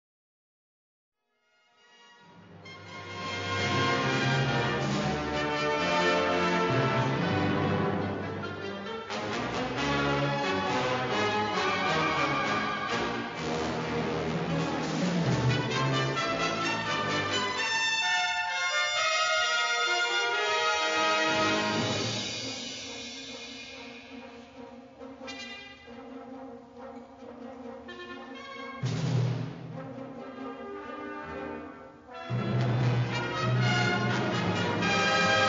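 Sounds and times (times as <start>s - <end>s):
fanfare: 2.5s - 35.4s.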